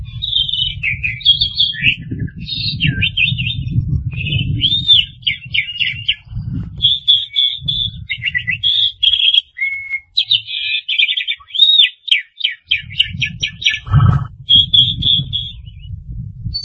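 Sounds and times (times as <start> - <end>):
low rumbling noise: 0.0 - 9.1, 12.8 - 16.6
starling singing: 0.0 - 16.0.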